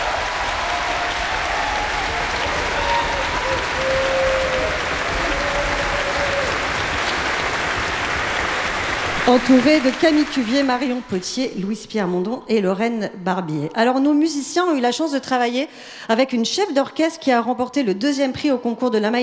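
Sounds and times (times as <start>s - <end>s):
audience applause: 0.0s - 11.4s
speech: 9.3s - 19.2s.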